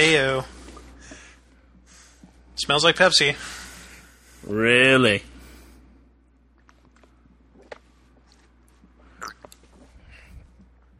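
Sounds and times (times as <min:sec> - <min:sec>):
speech: 0:00.0 - 0:00.6, 0:02.6 - 0:03.6, 0:04.4 - 0:05.3
person swallowing: 0:09.2 - 0:09.9.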